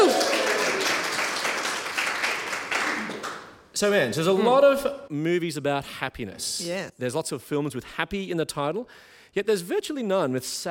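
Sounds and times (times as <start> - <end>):
audience applause: 0.0 - 3.6
speech: 3.8 - 10.7.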